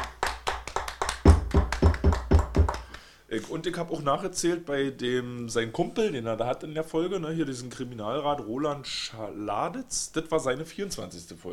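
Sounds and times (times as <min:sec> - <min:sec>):
person clapping alone: 0:00.0 - 0:03.1
speech: 0:03.4 - 0:11.5.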